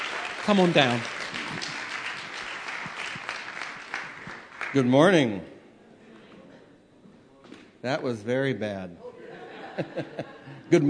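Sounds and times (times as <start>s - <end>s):
audience applause welcoming a speaker: 0.0s - 5.1s
speech: 0.4s - 1.7s, 4.7s - 5.5s, 7.8s - 9.0s, 9.8s - 10.8s
laughter: 9.0s - 10.8s.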